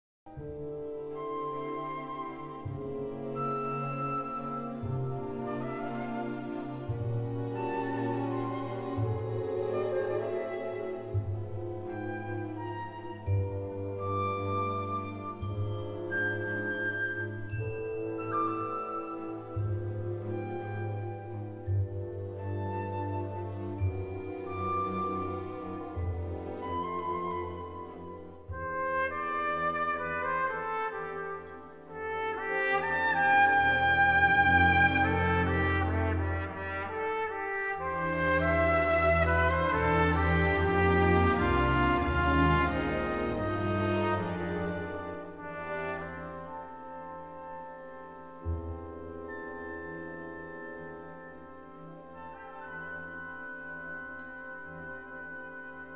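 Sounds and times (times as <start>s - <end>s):
trumpet concerto: 0.3s - 55.9s.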